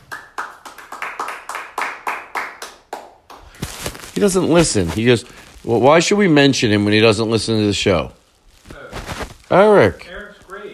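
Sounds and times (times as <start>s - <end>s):
hand clapping: 0.0s - 3.7s
speech: 4.2s - 8.2s, 9.5s - 10.0s.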